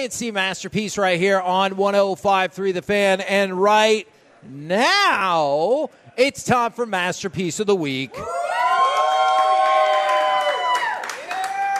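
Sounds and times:
speech: 0:00.0 - 0:08.4
applause and cheering in the studio: 0:08.2 - 0:11.7.

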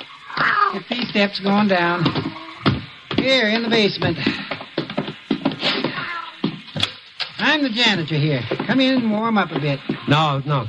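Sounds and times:
black cat meowing: 0:00.2 - 0:00.8, 0:05.7 - 0:06.4
speech: 0:00.7 - 0:02.2, 0:03.2 - 0:04.4, 0:07.5 - 0:10.6.

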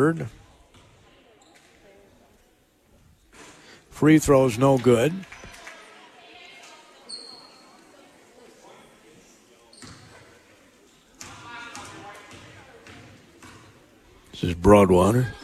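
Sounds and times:
speech: 0:00.0 - 0:00.4, 0:04.0 - 0:05.3, 0:14.4 - 0:15.4
basketball commentator speaking: 0:03.9 - 0:05.2, 0:14.4 - 0:15.4
basketball dribbled down the court in a girls' basketball game: 0:09.8 - 0:10.2, 0:11.2 - 0:13.8.

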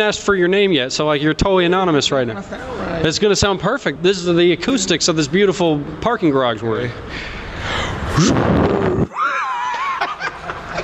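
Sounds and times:
speech: 0:00.0 - 0:09.2
person imitating a jet engine: 0:08.1 - 0:09.6
person chuckling: 0:08.1 - 0:10.8.

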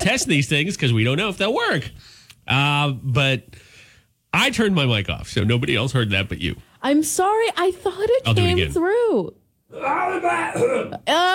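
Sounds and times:
speech: 0:00.0 - 0:03.7, 0:04.3 - 0:11.3
guttural throat-singing-like vocal sound from a human voice: 0:09.8 - 0:11.1.

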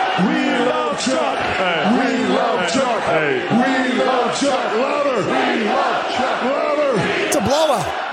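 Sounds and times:
speech: 0:00.2 - 0:06.6
large crowd cheering loudly: 0:07.3 - 0:08.0.

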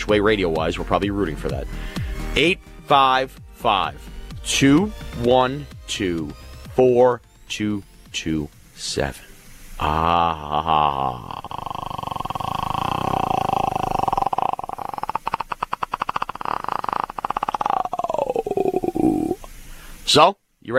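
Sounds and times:
speech: 0:00.1 - 0:12.1, 0:20.1 - 0:20.7
long throat-clearing growl: 0:09.8 - 0:19.5.

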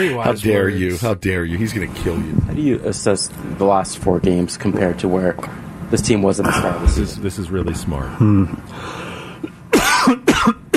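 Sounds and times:
speech: 0:00.0 - 0:09.0
person coughing after something went down the wrong pipe: 0:09.7 - 0:10.7.

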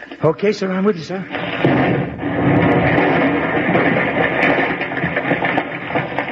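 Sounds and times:
speech: 0:00.2 - 0:02.2
plane exploding on the railway tracks: 0:01.3 - 0:06.3.

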